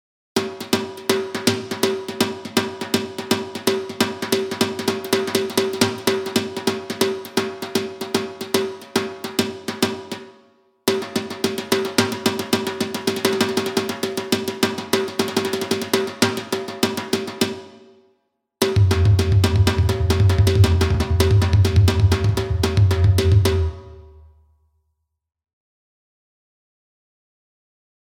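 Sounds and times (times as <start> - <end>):
Indian dhol drumming: 0.4 - 17.9, 18.6 - 24.3.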